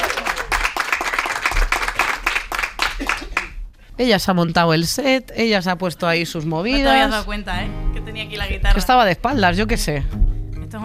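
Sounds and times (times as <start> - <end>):
audience applause: 0.0 - 3.6
speech: 4.0 - 10.8.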